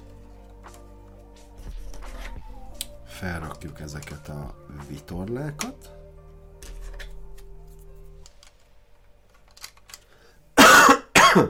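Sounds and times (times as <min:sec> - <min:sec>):
speech: 0:03.2 - 0:06.0
person with a sore irritated throat coughing: 0:10.6 - 0:11.4.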